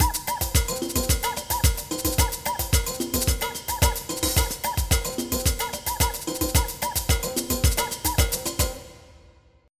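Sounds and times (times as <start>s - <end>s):
samba music: 0.0s - 9.4s.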